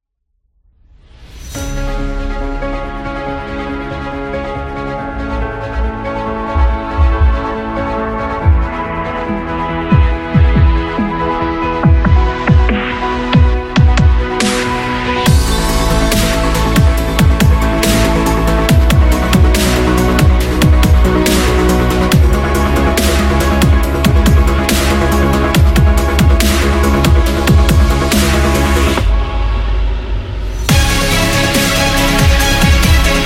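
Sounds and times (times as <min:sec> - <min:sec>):
cinematic action music: 0:00.9 - 0:33.2.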